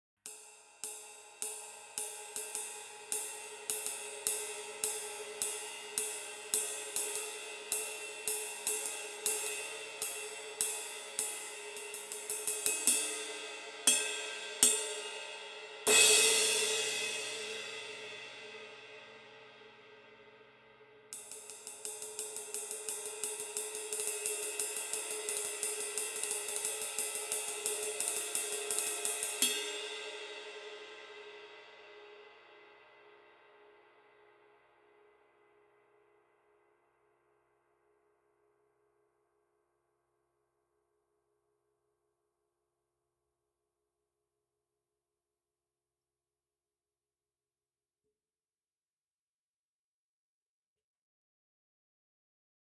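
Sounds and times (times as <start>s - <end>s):
ride cymbal: 0.3s - 18.6s, 21.1s - 31.4s.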